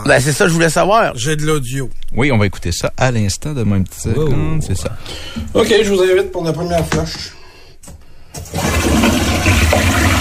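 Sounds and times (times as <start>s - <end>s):
speech: 0.0s - 7.4s, 8.4s - 10.2s
toilet flushing: 8.4s - 10.2s.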